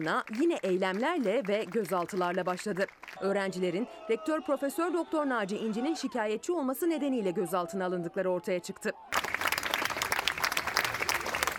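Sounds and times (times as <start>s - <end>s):
academics clapping while marching: 0.0s - 3.2s, 9.1s - 11.5s
speech: 0.0s - 9.1s.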